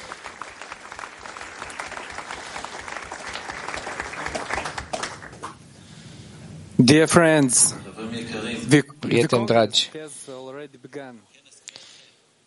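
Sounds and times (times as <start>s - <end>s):
crowd applauding: 0.0s - 5.6s
speech: 6.8s - 10.1s.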